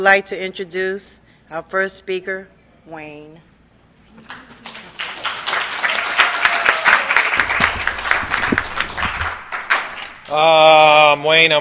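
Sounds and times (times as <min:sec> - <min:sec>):
speech: 0:00.0 - 0:03.5, 0:04.2 - 0:04.7, 0:10.3 - 0:11.5
audience applause for speaker: 0:04.2 - 0:10.5.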